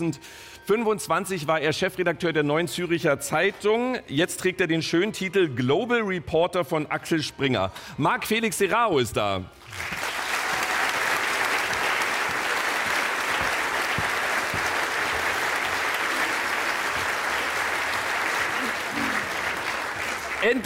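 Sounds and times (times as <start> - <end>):
speech: 0.0 - 10.1, 20.4 - 20.6
audience applause: 9.7 - 20.6.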